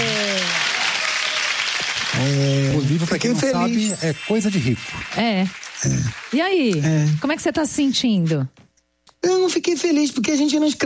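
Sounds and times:
applause celebrating a Prêmio Jabuti semifinalist: 0.0 - 3.4, 4.1 - 7.8
speech: 2.2 - 8.6, 9.2 - 10.8.

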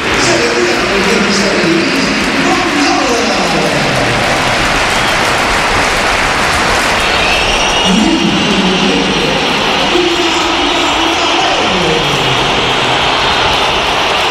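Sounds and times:
stadium crowd applause: 0.0 - 14.2
loud shrill crowd whistling: 6.8 - 14.2.

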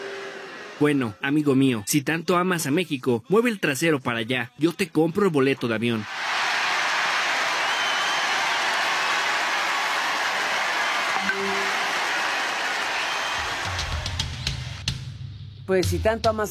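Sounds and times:
convention crowd ovation with applause and cheering: 0.0 - 0.8, 6.0 - 14.9
speech: 0.8 - 6.3, 15.7 - 16.4.

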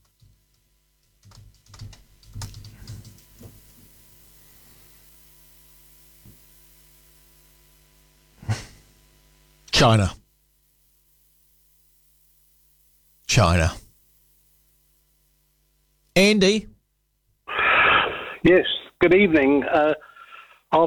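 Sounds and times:
typing on a computer keyboard while searching online: 1.0 - 3.4
speech: 9.8 - 10.2, 13.4 - 13.8, 16.2 - 16.7, 18.4 - 20.1.

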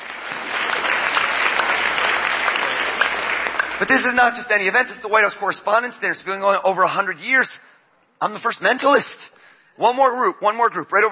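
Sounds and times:
audience applause: 0.0 - 4.4
speech: 3.8 - 11.1.

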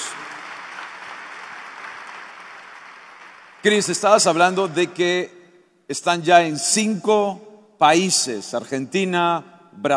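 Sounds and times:
audience applause: 0.0 - 4.3
speech: 3.6 - 9.9.

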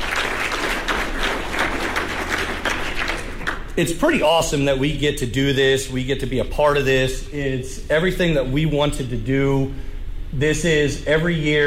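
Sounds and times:
audience applause: 0.0 - 3.7
speech: 3.8 - 11.6.

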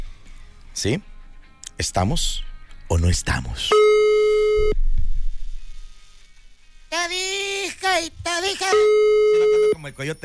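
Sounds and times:
speech: 0.8 - 1.1, 1.8 - 3.9, 8.0 - 10.2
telephone busy signal after dialing: 3.7 - 4.8, 8.6 - 9.8
low rumbling: 4.7 - 5.8.

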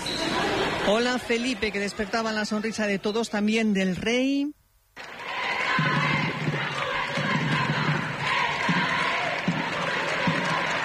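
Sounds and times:
speech: 0.9 - 5.1
scattered shouts: 5.0 - 10.8
small crowd clapping and cheering: 5.0 - 10.8.

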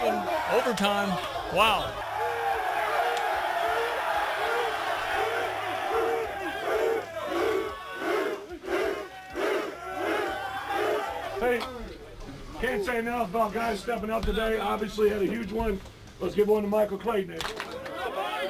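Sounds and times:
team of men whooping and shouting in locker room: 0.0 - 11.7, 17.7 - 18.4
speech: 0.5 - 2.0, 12.6 - 17.6.

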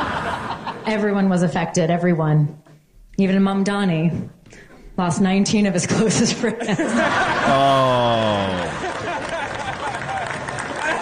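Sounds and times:
crowd reacting, chuckling: 0.0 - 0.9, 6.4 - 11.0
speech: 0.8 - 2.6, 3.2 - 8.8.

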